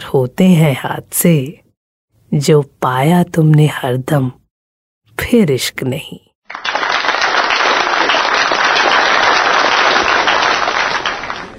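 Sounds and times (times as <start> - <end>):
speech: 0.1 - 1.6, 2.3 - 4.4, 5.2 - 6.7
thunderous applause from a large crowd: 6.5 - 11.5.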